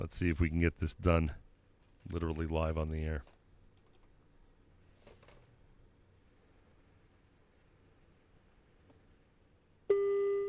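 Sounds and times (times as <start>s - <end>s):
speech: 0.0s - 1.4s, 2.0s - 3.4s
phone ringback tone: 9.9s - 10.4s.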